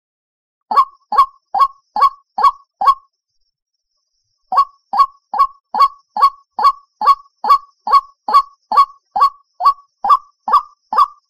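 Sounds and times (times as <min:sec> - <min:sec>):
white-breasted waterhen hollow calls: 0:00.7 - 0:03.0, 0:04.5 - 0:11.2.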